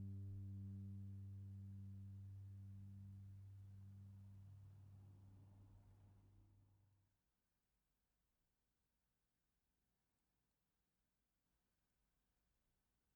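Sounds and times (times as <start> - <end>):
solo cello suite: 0.0 - 4.6.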